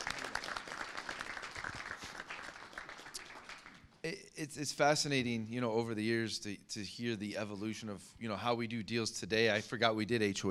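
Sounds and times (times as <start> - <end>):
round of applause: 0.0 - 4.0
speech: 4.1 - 10.4.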